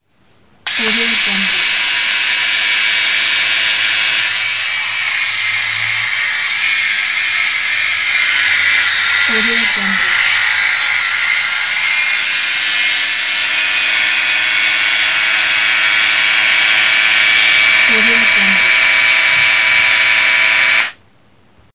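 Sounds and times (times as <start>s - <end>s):
electric shaver: 0.7s - 21.0s.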